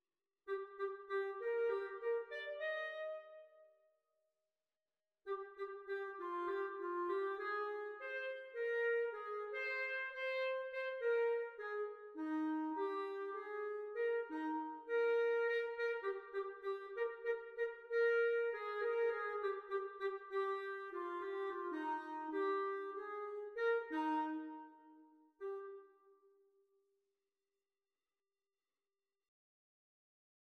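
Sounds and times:
clarinet duet practice: 0.5s - 3.6s, 5.3s - 26.3s.

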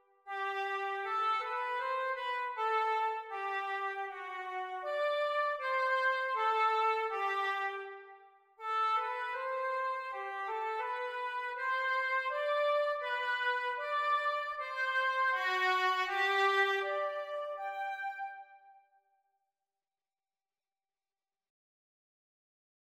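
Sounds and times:
oboe duet practice: 0.3s - 8.0s, 8.6s - 18.5s.

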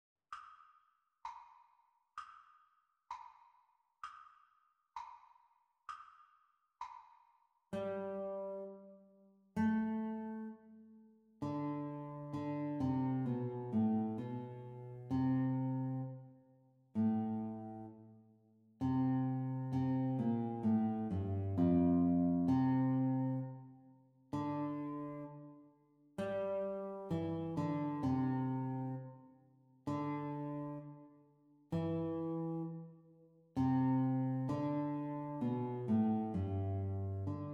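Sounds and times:
guitar duet playalong practice: 7.7s - 9.0s, 9.6s - 10.6s, 11.4s - 16.2s, 17.0s - 17.9s, 18.8s - 23.6s, 24.3s - 25.5s, 26.2s - 29.2s, 29.9s - 31.0s, 31.7s - 32.9s, 33.6s - 37.5s.

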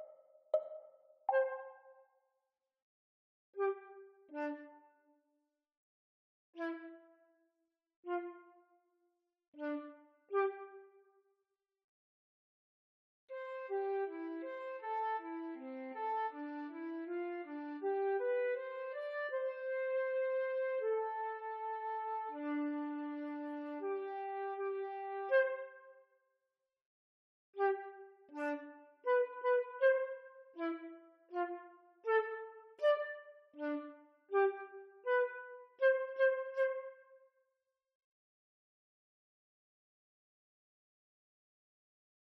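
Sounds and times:
flute: 0.6s - 2.0s, 3.6s - 4.8s, 6.6s - 7.1s, 8.1s - 8.5s, 9.6s - 10.9s, 13.3s - 26.0s, 27.6s - 37.2s.

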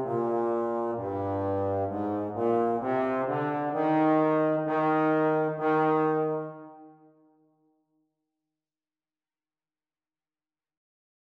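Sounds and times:
playalong music for baritone euphonium practice: 0.0s - 6.9s.

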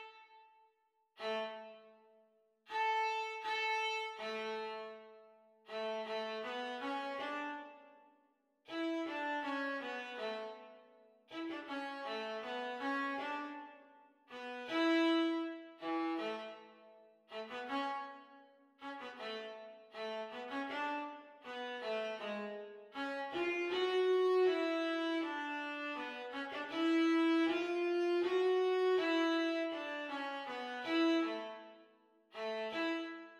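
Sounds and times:
viola duet at practice speed: 1.2s - 2.0s, 2.7s - 7.9s, 8.7s - 33.3s.

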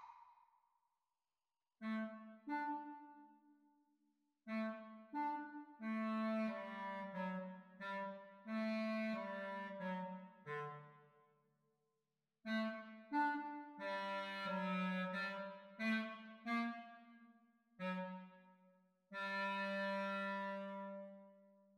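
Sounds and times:
clarinet duet exam recording: 1.8s - 3.3s, 4.5s - 11.0s, 12.5s - 17.1s, 17.8s - 18.6s, 19.1s - 21.5s.

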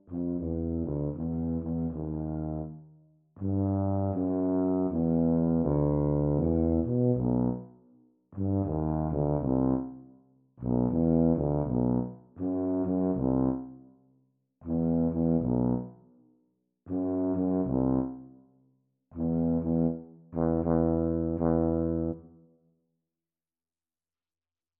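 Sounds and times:
B-flat tuba duet at practice speed: 0.0s - 2.8s, 3.4s - 7.7s, 8.4s - 10.0s, 10.6s - 13.7s, 14.6s - 16.0s, 16.9s - 18.2s, 19.2s - 22.2s.

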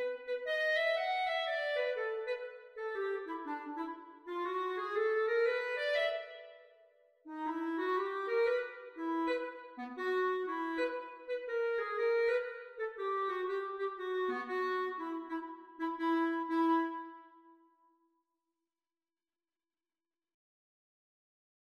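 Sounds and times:
clarinet duet: 0.0s - 6.6s, 7.3s - 17.5s.

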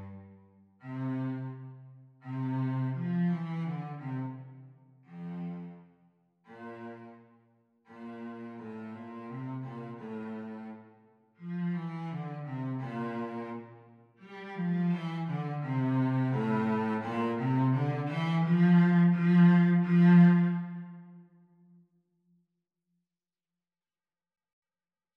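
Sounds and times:
cello playing the teacher part of a duet: 0.0s - 5.8s, 6.5s - 7.3s, 7.9s - 21.2s.

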